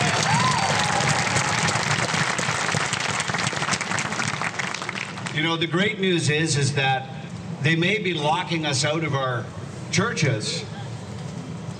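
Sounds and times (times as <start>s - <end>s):
audience round of applause: 0.0s - 5.4s
speech: 5.4s - 10.7s.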